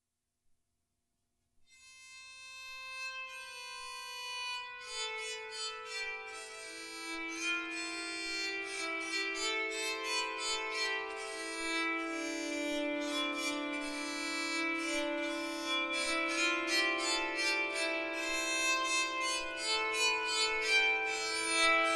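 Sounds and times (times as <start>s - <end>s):
tenor bowed psaltery: 4.9s - 21.9s.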